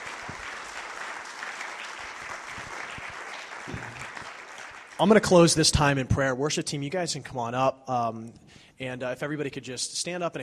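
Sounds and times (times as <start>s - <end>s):
audience applause: 0.0s - 5.5s
speech: 5.0s - 10.4s.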